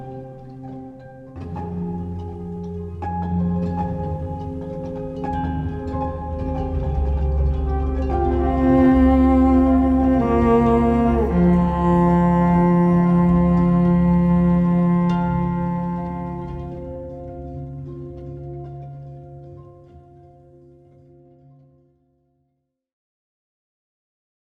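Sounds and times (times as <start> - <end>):
Jewish violin music: 0.0 - 18.4.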